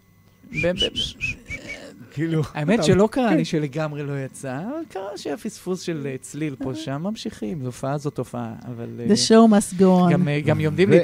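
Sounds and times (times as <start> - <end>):
speech: 0.5 - 1.2, 2.2 - 11.0
person whistling through the lips: 0.5 - 2.0.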